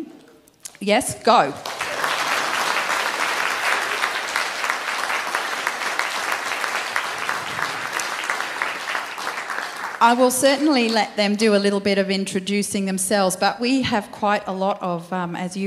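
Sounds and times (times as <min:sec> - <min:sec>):
speech: 0:00.8 - 0:01.8, 0:10.0 - 0:15.6
audience applause welcoming guests at a morning gathering: 0:01.6 - 0:11.0.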